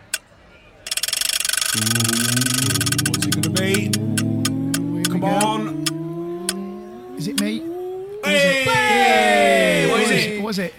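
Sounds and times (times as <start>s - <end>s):
game-show prize wheel Wheel of Features being spun: 1.3s - 6.0s
speech: 1.7s - 4.2s, 5.2s - 5.9s, 7.2s - 9.6s, 10.2s - 10.7s.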